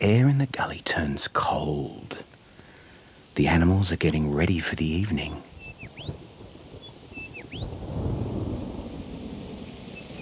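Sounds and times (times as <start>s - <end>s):
speech: 0.0s - 2.3s, 3.4s - 5.5s
crickets trilling: 0.0s - 10.2s
thunder rumbling before rain: 3.4s - 10.2s
rising bird whistles: 5.6s - 7.9s.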